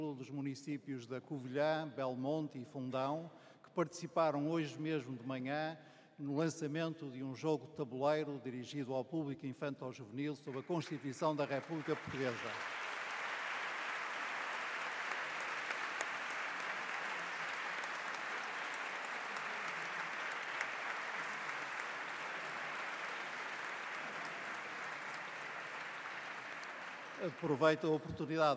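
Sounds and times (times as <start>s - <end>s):
speech: 0.0s - 12.8s, 27.3s - 28.5s
audience applause in parliament gallery: 10.6s - 28.5s.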